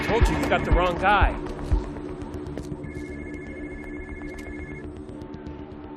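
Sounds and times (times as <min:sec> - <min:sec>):
speech: 0:00.2 - 0:01.5
phone ringing: 0:02.8 - 0:04.9.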